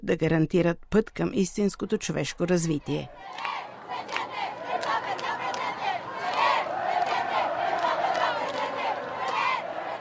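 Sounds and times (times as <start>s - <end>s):
speech: 0.0s - 4.2s
large crowd cheering and shouting: 3.1s - 9.9s.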